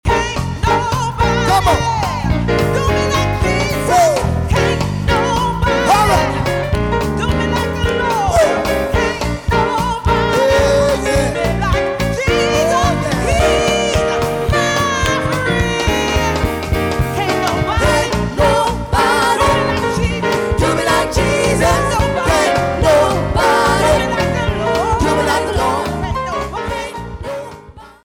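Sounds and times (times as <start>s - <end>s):
gospel medley singing: 0.1s - 28.0s.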